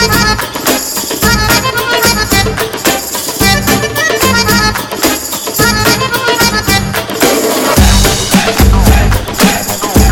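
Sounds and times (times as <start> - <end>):
instrumental music: 0.0 - 10.1.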